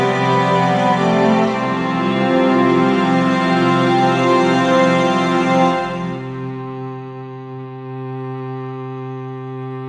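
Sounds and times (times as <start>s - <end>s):
uplifting strings: 0.0s - 7.6s.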